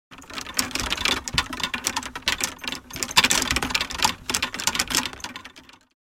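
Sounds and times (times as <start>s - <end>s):
golf clubs shaking in tour bag: 0.1s - 5.9s.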